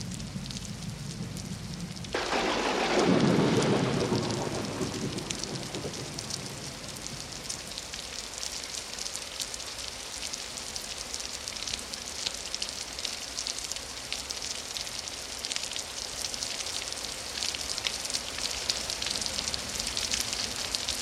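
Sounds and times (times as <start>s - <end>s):
light and heavy rain: 0.0s - 21.0s
thunder: 0.5s - 7.6s.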